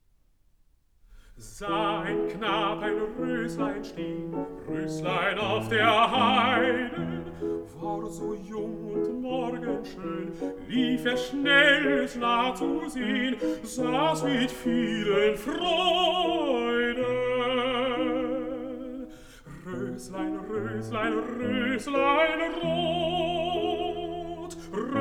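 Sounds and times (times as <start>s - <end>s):
piano: 1.2s - 24.9s
person singing: 1.4s - 24.9s.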